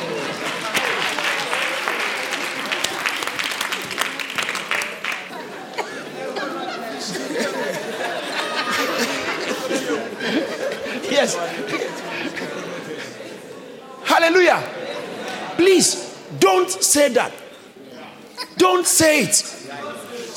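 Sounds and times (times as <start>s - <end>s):
audience clapping: 0.0s - 5.5s
laughter: 2.4s - 16.0s
speech: 15.6s - 17.4s, 18.6s - 19.6s.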